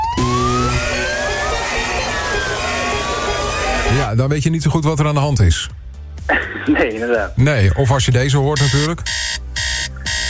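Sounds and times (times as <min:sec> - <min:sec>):
siren-style DJ alarm jingle: 0:00.0 - 0:04.1, 0:08.6 - 0:10.2
speech: 0:04.1 - 0:09.4.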